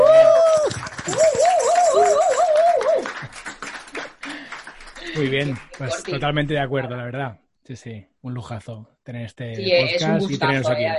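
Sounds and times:
applause: 0.4s - 6.4s
speech: 5.3s - 10.9s.

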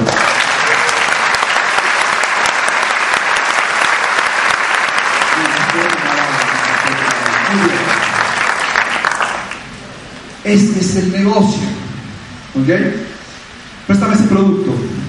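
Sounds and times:
live audience applause: 0.0s - 9.8s
speech: 10.5s - 11.7s, 12.6s - 13.1s, 14.3s - 14.9s.

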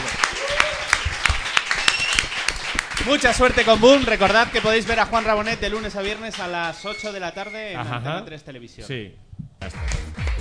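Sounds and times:
studio audience applause: 0.0s - 7.2s
speech: 3.1s - 9.8s.

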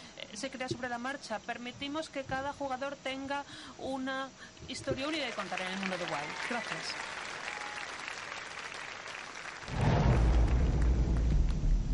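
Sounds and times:
speech: 0.4s - 7.2s
audience applauding: 5.0s - 11.9s.

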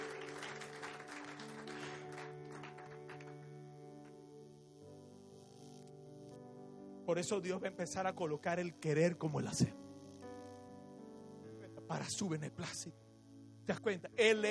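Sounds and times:
audience applause: 0.0s - 3.5s
speech: 7.1s - 9.8s, 11.9s - 13.0s, 13.6s - 14.4s.

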